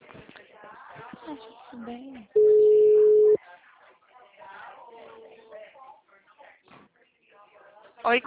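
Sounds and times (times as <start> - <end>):
speech: 1.3 - 2.6, 8.0 - 8.2
phone line tone after a dropped call: 2.4 - 3.4.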